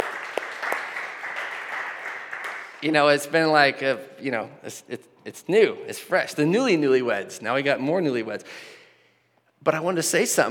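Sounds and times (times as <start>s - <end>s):
small group applause: 0.0s - 3.0s
speech: 2.8s - 8.8s, 9.6s - 10.4s.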